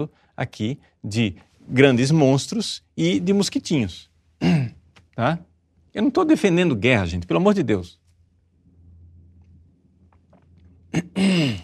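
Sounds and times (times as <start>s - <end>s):
speech: 0.0s - 8.0s
person clearing throat: 4.4s - 4.9s, 10.9s - 11.6s.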